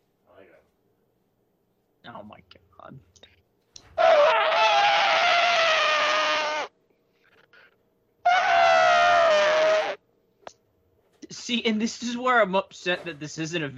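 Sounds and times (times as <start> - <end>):
speech: 2.0 - 3.4, 11.5 - 13.7
person imitating an elephant trumpeting: 3.9 - 6.7, 8.3 - 10.0.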